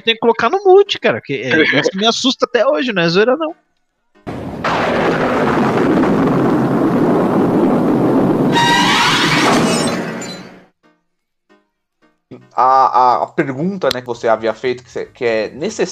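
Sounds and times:
speech: 0.0s - 3.6s, 12.6s - 15.9s
loud thunder rumbling: 4.3s - 10.2s.

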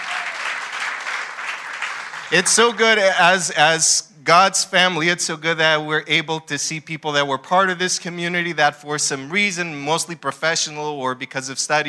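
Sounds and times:
round of applause: 0.0s - 3.1s
speech: 2.3s - 11.8s.

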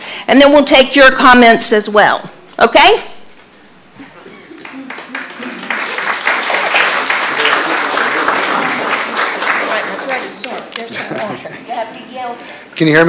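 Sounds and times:
speech: 0.3s - 3.1s, 12.8s - 13.0s
audience applause at a City of Zephyrhills parks public input meeting: 4.5s - 11.3s.

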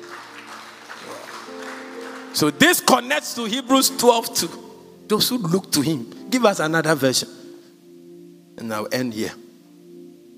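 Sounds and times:
audience clapping: 0.0s - 3.1s
speech: 2.4s - 7.4s, 8.6s - 9.4s.

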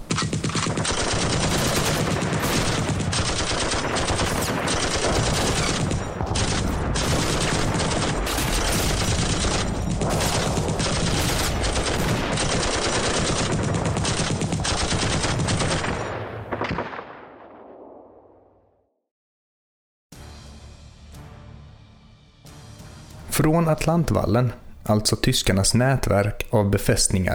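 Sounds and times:
machine gun bursts: 0.0s - 15.9s
heavy booming artillery blasts: 0.0s - 18.2s
speech: 23.4s - 27.3s.

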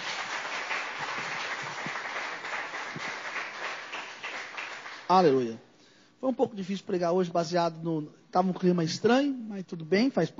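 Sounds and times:
audience applause: 0.0s - 5.1s
speech: 5.1s - 10.3s.

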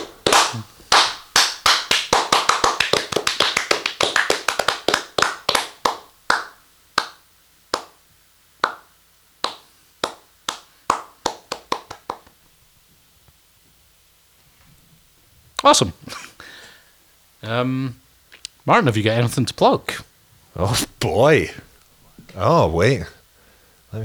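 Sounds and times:
hand clapping applause: 0.0s - 8.0s, 8.6s - 12.4s
speech: 0.5s - 0.8s, 15.6s - 16.3s, 17.5s - 18.0s, 18.6s - 21.7s, 22.3s - 23.2s.

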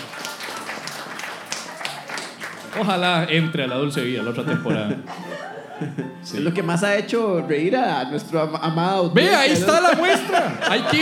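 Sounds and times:
applause: 0.0s - 3.3s
speech: 2.8s - 11.0s
laughter: 4.2s - 6.2s, 9.2s - 11.0s.

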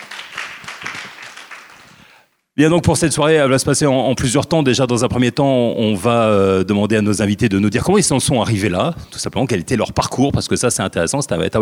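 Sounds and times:
audience applause: 0.0s - 2.2s
speech: 2.6s - 11.6s.

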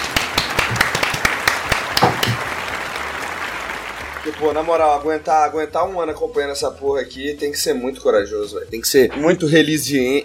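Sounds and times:
applause: 0.0s - 5.1s
speech: 4.4s - 10.2s.

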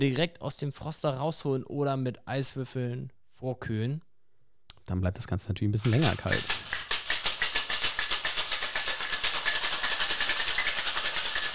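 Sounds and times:
speech: 0.0s - 4.1s, 4.9s - 6.8s
cocktail shaker being shaken vigorously: 5.8s - 11.5s.

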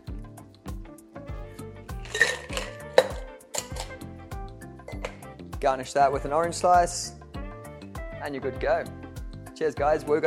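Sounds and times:
cocktail shaken with ice: 2.0s - 4.0s
speech: 5.6s - 7.2s, 8.2s - 9.0s, 9.6s - 10.2s.

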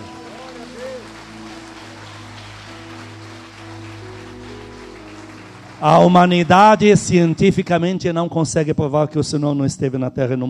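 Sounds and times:
audience applause: 0.0s - 8.0s
speech: 5.8s - 10.4s.

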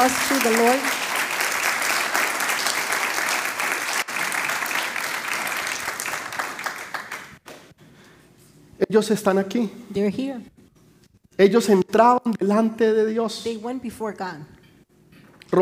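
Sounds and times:
speech: 0.0s - 1.0s, 8.8s - 10.6s, 11.4s - 14.6s
audience applause: 0.0s - 7.4s.

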